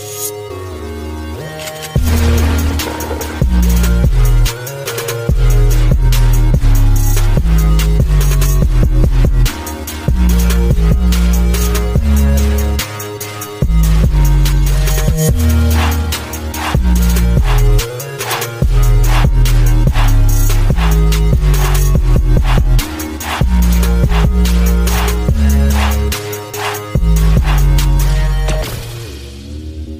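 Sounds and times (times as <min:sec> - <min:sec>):
remix music: 0:00.0 - 0:29.9.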